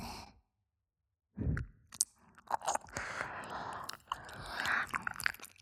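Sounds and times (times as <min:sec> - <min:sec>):
ASMR ear licking sounds: 0:01.5 - 0:05.6.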